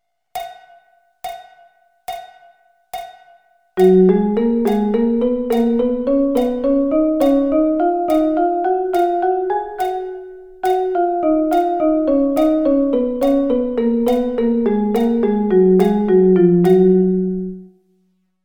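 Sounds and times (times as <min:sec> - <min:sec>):
double sticking drumming: 0:03.8 - 0:17.2.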